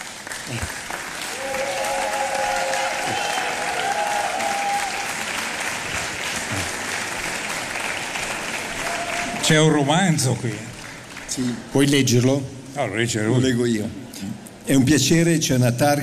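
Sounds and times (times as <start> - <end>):
audience applause: 0.0 - 11.7
speech: 0.5 - 0.9, 9.5 - 10.7, 11.4 - 16.0.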